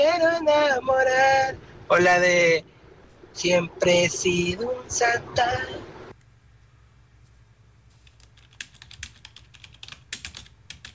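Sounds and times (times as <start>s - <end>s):
speech: 0.0s - 2.8s, 3.4s - 5.9s
room hiss: 0.0s - 10.9s
typing on a keyboard: 8.0s - 10.9s.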